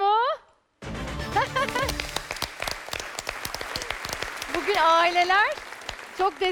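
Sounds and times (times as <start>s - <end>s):
audience applause: 1.4s - 6.4s
speech: 4.8s - 5.6s, 6.2s - 6.4s.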